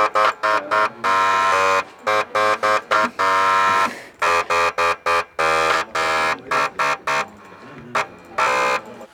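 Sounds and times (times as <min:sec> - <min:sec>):
three old floppy disk drives playing music: 0:00.0 - 0:09.1.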